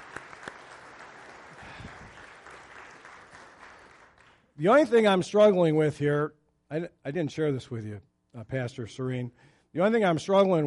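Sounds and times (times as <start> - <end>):
audience applause: 0.0 - 4.4
speech: 4.6 - 10.6.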